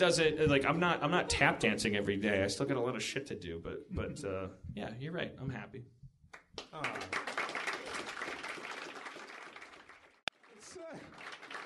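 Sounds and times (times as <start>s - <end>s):
speech: 0.0s - 6.0s, 6.6s - 7.3s
audience applause: 6.8s - 11.6s.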